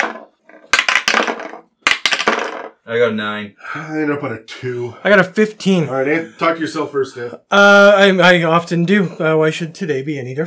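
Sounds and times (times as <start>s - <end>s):
dice rolling through a dice tower: 0.0s - 2.8s
speech: 2.9s - 10.4s.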